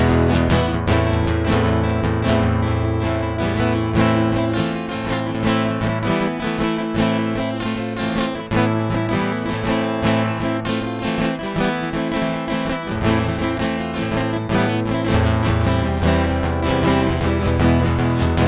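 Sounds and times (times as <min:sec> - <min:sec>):
guitar instrumental: 0:00.0 - 0:18.4.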